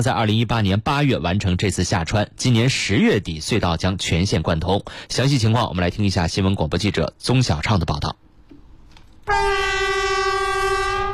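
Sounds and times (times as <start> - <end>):
speech: 0.0 - 8.3, 9.3 - 9.9
Harmony Great Wall EMU train horn echoing through a valley: 9.3 - 11.1.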